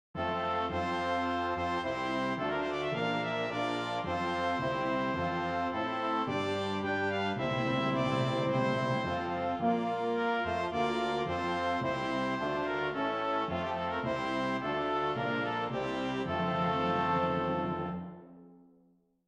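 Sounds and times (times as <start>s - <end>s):
brass instruments: 0.1s - 18.5s.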